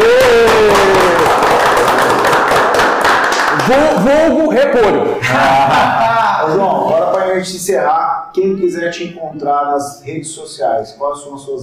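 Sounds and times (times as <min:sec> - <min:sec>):
round of applause: 0:00.0 - 0:04.3
speech: 0:03.7 - 0:11.6
laughter: 0:05.0 - 0:07.2.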